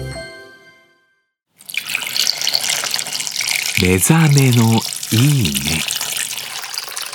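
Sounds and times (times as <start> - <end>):
clams steaming in sake: 1.7 - 7.1
speech: 3.8 - 6.0.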